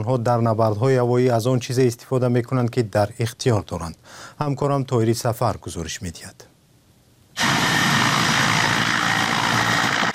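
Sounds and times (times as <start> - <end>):
speech: 0.0 - 6.5
Ukrainian Mi-8 helicopter engine and rotor in flight: 7.4 - 10.1.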